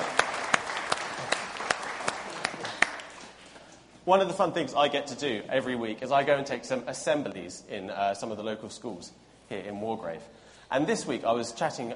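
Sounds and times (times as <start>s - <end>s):
audience round of applause: 0.0s - 3.4s
speech: 4.0s - 11.9s.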